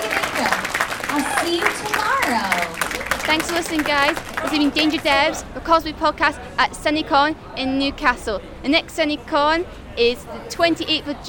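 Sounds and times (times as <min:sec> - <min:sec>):
audience applause: 0:00.0 - 0:05.4
speech: 0:03.3 - 0:11.2.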